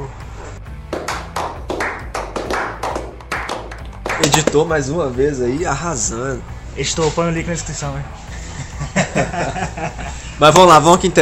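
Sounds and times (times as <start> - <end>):
hand clapping: 0.8 - 4.7
speech: 4.5 - 8.2, 9.2 - 11.1
laughter: 8.3 - 10.3.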